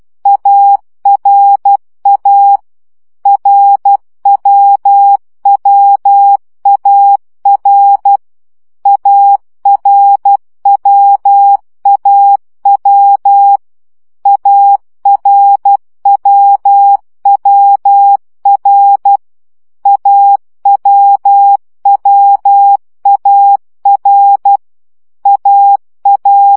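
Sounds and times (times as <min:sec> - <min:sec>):
CW morse code practice at 10 baud: 0:00.3 - 0:02.6, 0:03.3 - 0:08.2, 0:08.9 - 0:13.6, 0:14.3 - 0:19.2, 0:19.8 - 0:24.6, 0:25.2 - 0:26.5.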